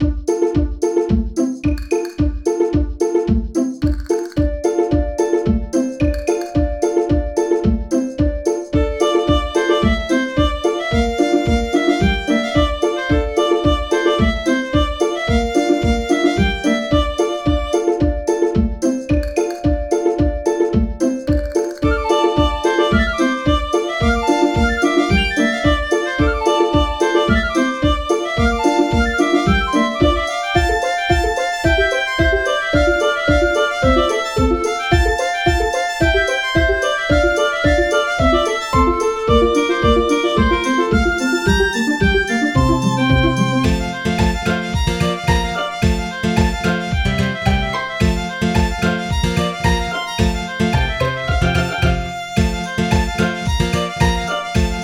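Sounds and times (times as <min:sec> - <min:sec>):
jig played pizzicato: 0:00.0 - 0:54.8.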